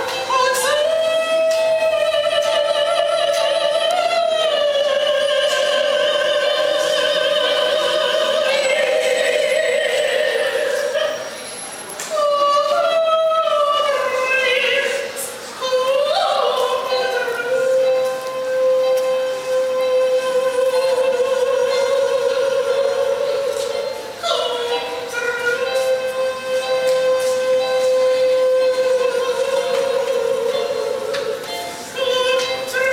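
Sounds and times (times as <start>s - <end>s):
person singing in a subway: 0.0s - 11.4s, 12.0s - 32.9s.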